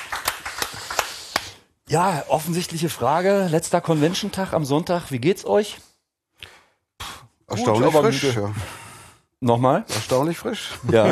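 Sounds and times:
hand claps: 0.0 - 1.6
speech: 1.9 - 5.9, 7.6 - 8.8, 9.4 - 11.1.

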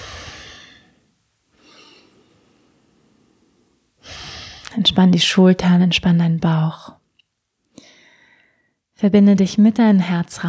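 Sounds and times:
slow deep breathing during a guided relaxation exercise: 0.0 - 4.7, 7.7 - 8.8
speech: 4.9 - 7.0, 9.0 - 10.4.

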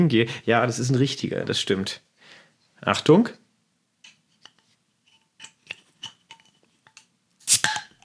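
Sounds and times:
speech: 0.0 - 2.1, 2.8 - 3.4
beer bottle opening with pop and fizz: 7.4 - 8.0.

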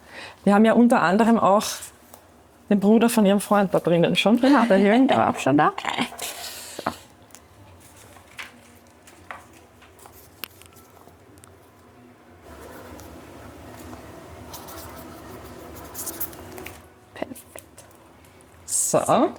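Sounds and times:
speech: 0.4 - 1.9, 2.7 - 6.2, 19.0 - 19.3
pen scratching on paper, signing a guestbook: 14.5 - 16.4.

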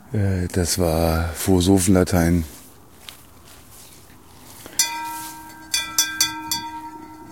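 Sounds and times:
speech: 0.1 - 2.6
church bell ringing: 4.7 - 7.3.

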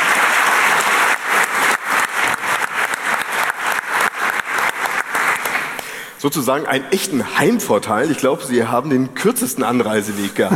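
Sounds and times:
audience applause: 0.0 - 5.9
speech: 6.2 - 10.5.

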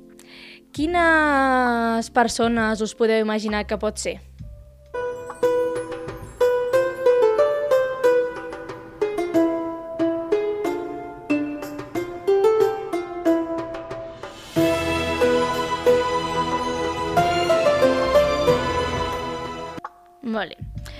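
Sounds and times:
speech: 0.8 - 4.3
Arabic-style instrumental music over a low drone: 4.4 - 20.0.

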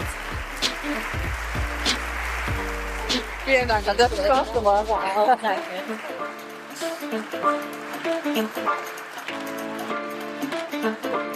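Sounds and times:
audience applause: 0.0 - 11.3
speech: 3.5 - 9.0, 10.8 - 11.3.

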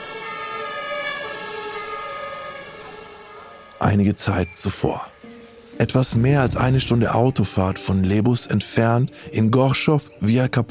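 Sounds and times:
emergency vehicle sirens wailing: 0.0 - 8.1
speech: 3.9 - 5.1, 5.8 - 10.6.

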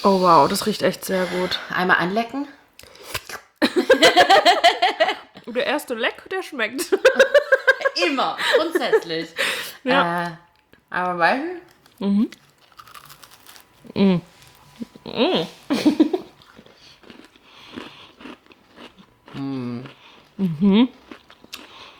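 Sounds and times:
speech: 0.0 - 2.6, 3.8 - 12.4, 14.0 - 14.3, 15.1 - 16.1, 19.4 - 21.0
laughter: 3.6 - 5.3, 6.8 - 9.8
lip smacking and chewing while eating food: 16.2 - 21.9.

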